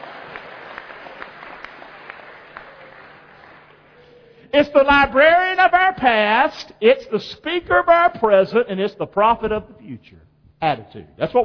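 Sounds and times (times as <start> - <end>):
audience applause: 0.0 - 4.2
speech: 4.5 - 11.4.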